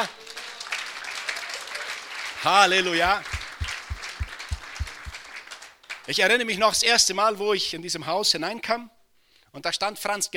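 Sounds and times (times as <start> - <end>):
audience applause: 0.0 - 5.7
speech: 2.4 - 3.3, 6.1 - 10.3.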